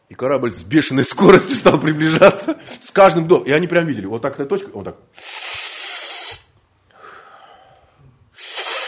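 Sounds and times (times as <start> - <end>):
speech: 0.1 - 5.5
man demonstrating sharp forceful inhaling breaths: 5.2 - 8.8.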